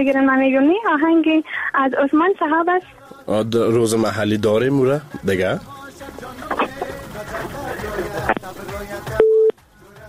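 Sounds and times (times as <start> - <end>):
speech: 0.0 - 6.6
telephone busy tone after a dropped call: 9.2 - 9.5.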